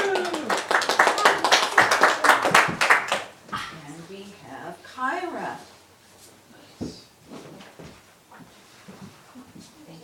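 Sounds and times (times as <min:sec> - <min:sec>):
person whooping: 0:00.0 - 0:01.7
audience applause: 0:00.0 - 0:03.3.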